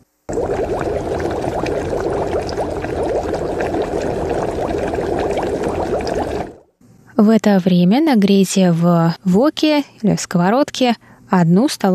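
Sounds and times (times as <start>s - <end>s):
pasta water being poured out: 0.3s - 6.7s
speech: 7.3s - 11.9s.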